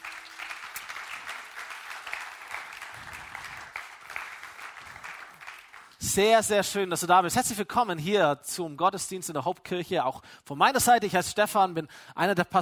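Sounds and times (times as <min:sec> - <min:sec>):
audience applause: 0:00.0 - 0:06.0
speech: 0:06.0 - 0:12.6.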